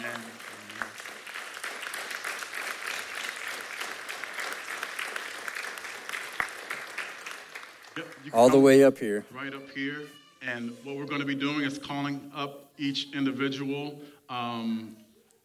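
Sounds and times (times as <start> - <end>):
audience applause: 0.0 - 8.8
speech: 8.0 - 15.0.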